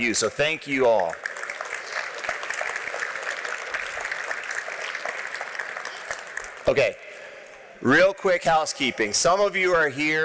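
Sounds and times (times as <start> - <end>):
speech: 0.0 - 1.4, 6.6 - 7.0, 7.8 - 10.2
audience applause: 0.0 - 6.8.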